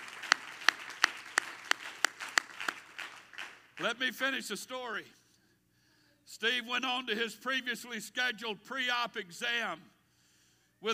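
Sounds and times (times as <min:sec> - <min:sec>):
audience clapping hands in steady rhythm: 0:00.0 - 0:04.0
speech: 0:03.8 - 0:05.2, 0:06.3 - 0:09.9.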